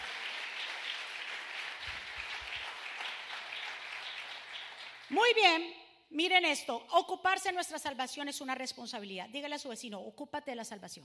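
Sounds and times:
audience applause: 0:00.0 - 0:05.1
speech: 0:05.1 - 0:11.0.

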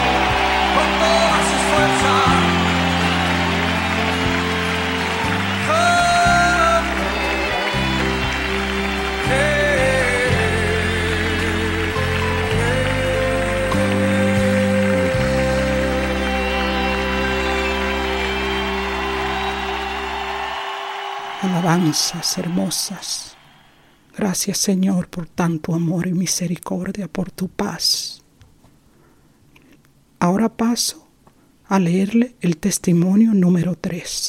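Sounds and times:
audience applauding: 0:00.0 - 0:23.8
speech: 0:21.9 - 0:23.3, 0:24.2 - 0:28.2, 0:30.2 - 0:31.0, 0:31.7 - 0:34.2.

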